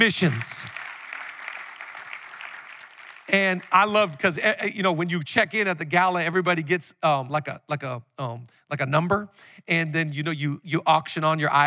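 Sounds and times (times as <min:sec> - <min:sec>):
speech: 0:00.0 - 0:00.8, 0:03.3 - 0:11.6
audience applause: 0:00.0 - 0:04.2.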